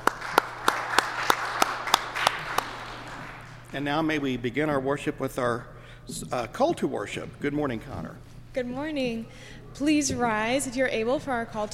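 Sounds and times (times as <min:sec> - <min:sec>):
church congregation clapping: 0:00.0 - 0:03.7
speech: 0:03.7 - 0:11.7.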